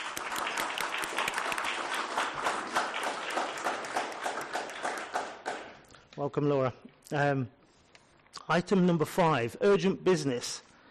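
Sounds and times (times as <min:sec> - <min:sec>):
applause for new councillor: 0:00.0 - 0:05.8
speech: 0:06.2 - 0:07.6, 0:08.5 - 0:10.6.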